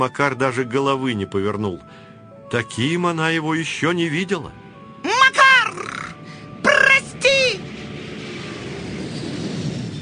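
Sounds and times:
speech: 0.0s - 4.6s
airplane roaring as it takes off: 3.0s - 10.0s.

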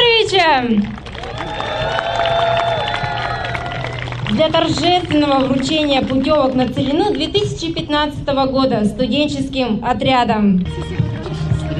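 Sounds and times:
speech: 0.5s - 1.5s, 4.4s - 11.0s
enthusiastic applause: 0.8s - 7.4s.

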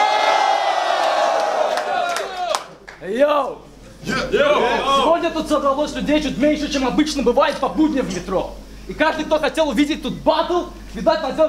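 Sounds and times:
crowd cheering and roaring: 0.0s - 2.8s
speech: 3.0s - 11.4s.

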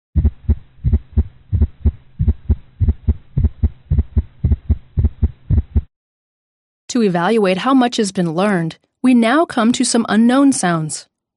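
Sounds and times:
atrial gallop heart sound in a dog: 0.2s - 5.9s
speech: 6.9s - 11.1s.

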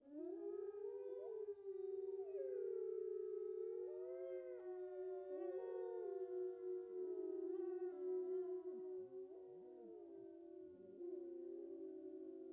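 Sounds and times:
wolf pack howling in chorus: 0.0s - 12.5s.

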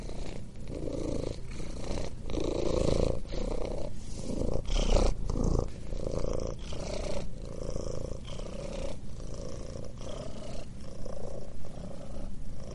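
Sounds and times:
cat purring: 0.0s - 12.7s.

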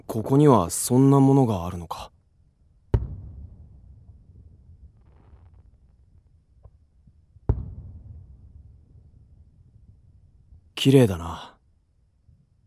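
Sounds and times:
speech: 0.1s - 2.1s, 10.8s - 11.5s
fireworks bursting: 2.9s - 6.8s, 7.4s - 8.5s.

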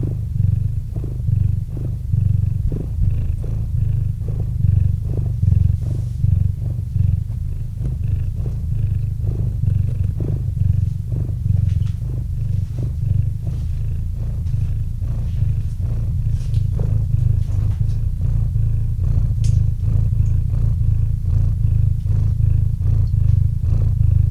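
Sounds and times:
cat purring: 0.0s - 24.2s
soft higher rustles: 5.0s - 23.9s.

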